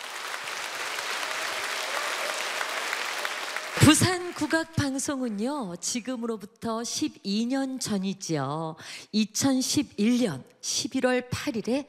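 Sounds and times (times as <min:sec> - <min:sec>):
audience applause: 0:00.0 - 0:04.7
speech: 0:03.9 - 0:11.8.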